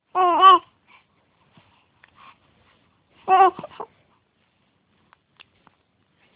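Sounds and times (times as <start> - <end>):
hungry baby crying: 0.2 - 0.6, 3.3 - 3.9.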